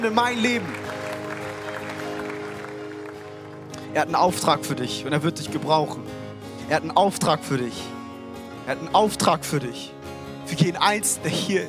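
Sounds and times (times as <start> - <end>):
speech: 0.0 - 0.8, 3.9 - 8.0, 8.7 - 11.6
applause at a church service: 0.0 - 4.0.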